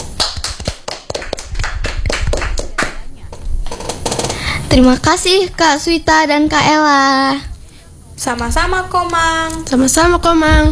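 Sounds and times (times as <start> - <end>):
audience clapping: 0.0 - 3.0
speech: 4.7 - 7.5, 8.2 - 10.7.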